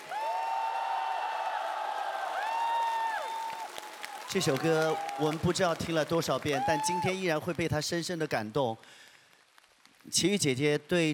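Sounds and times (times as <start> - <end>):
audience applause: 0.0 - 7.7
speech: 4.3 - 9.1, 10.0 - 11.1.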